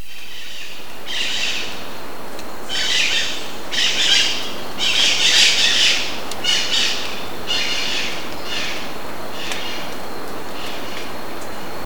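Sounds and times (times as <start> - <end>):
bird giving harsh raspy squawking calls: 0.0 - 2.0, 2.7 - 9.9.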